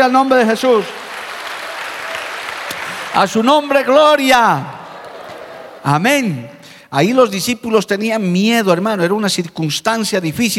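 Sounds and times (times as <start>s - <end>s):
speech: 0.0s - 1.1s, 3.2s - 4.8s, 5.8s - 10.5s
audience applause: 0.0s - 5.8s.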